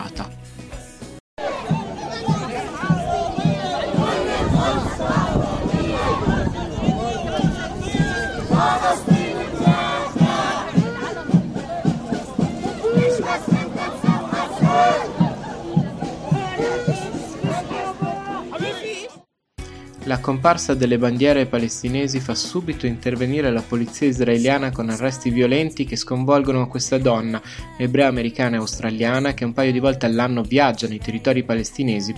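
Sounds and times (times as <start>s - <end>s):
large protest crowd shouting and cheering: 1.4s - 19.2s
speech: 20.1s - 32.1s.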